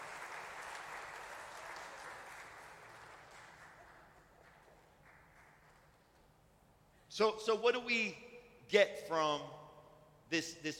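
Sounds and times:
audience applause for volunteers: 0.0 - 5.8
speech: 7.2 - 9.6, 10.3 - 10.7.

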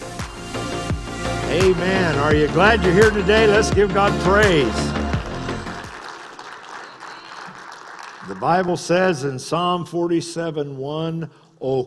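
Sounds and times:
speech: 1.5 - 5.0, 8.4 - 11.8
audience applause: 4.4 - 9.0.

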